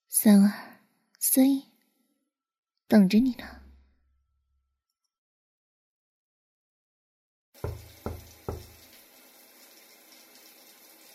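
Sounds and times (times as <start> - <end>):
speech: 0.1 - 0.6, 1.2 - 1.7, 2.9 - 3.6
firm knocks on a door: 7.6 - 8.8
shower running: 7.6 - 11.1.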